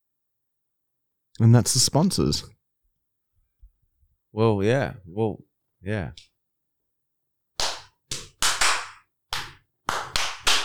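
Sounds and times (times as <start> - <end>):
speech: 1.4 - 2.6, 4.4 - 6.3
hand clapping: 7.6 - 10.6.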